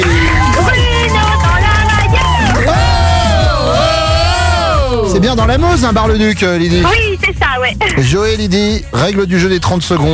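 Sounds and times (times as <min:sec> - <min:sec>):
studio applause: 0:00.0 - 0:05.5
speech: 0:05.3 - 0:10.1.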